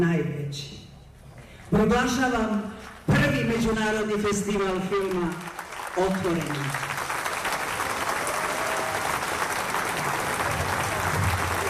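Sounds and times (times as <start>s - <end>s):
speech: 0.0s - 0.8s, 1.7s - 6.9s
thunderous applause from a packed summer stage audience at a film festival opening in Niš: 5.0s - 11.6s.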